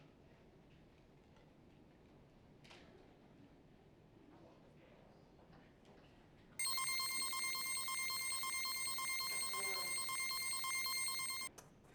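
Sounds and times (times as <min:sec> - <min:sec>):
machine running: 0:06.6 - 0:11.5.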